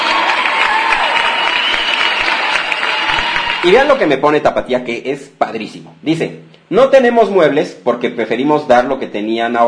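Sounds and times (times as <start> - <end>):
applause of many hands clapping: 0.0 - 4.1
speech: 3.6 - 9.6.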